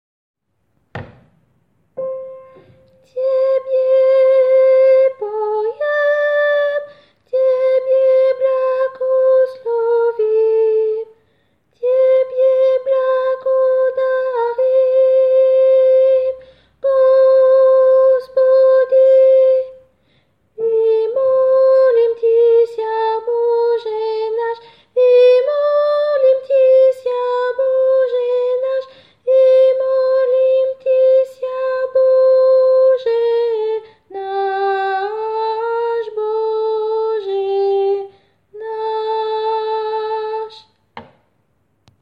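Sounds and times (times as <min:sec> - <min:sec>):
soprano singing: 0:02.0 - 0:19.9, 0:20.6 - 0:40.8.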